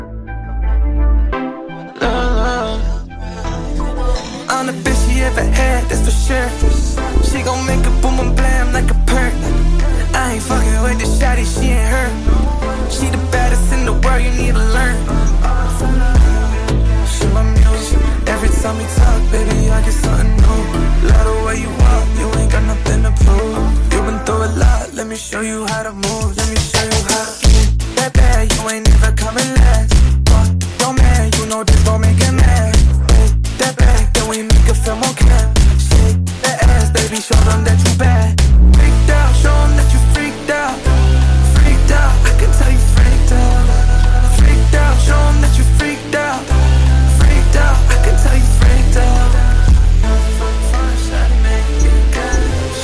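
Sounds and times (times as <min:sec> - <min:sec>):
brega funk remix: 0:00.6 - 0:52.8.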